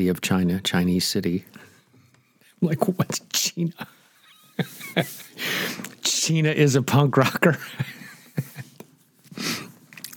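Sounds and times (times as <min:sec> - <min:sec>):
speech: 0:00.0 - 0:01.7, 0:02.6 - 0:04.0, 0:04.6 - 0:08.0
laughter: 0:03.7 - 0:05.4, 0:07.5 - 0:08.8
person sniffing: 0:04.9 - 0:06.0, 0:09.3 - 0:09.8.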